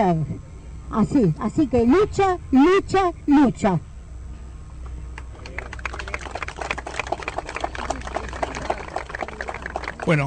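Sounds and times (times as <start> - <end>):
speech: 0.0 - 3.9, 10.1 - 10.2
applause after a speech: 5.4 - 10.2.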